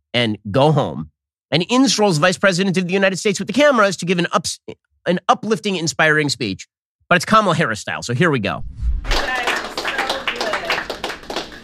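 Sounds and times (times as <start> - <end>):
speech: 0.2 - 9.5
people clapping: 9.1 - 11.6.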